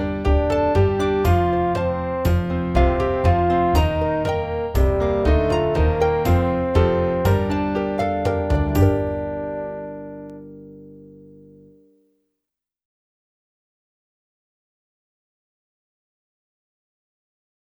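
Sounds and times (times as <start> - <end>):
saxophone: 0.2 - 10.8.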